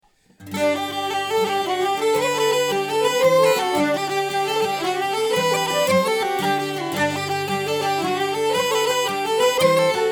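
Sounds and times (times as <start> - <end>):
open slip jigs: 0.6 - 10.1.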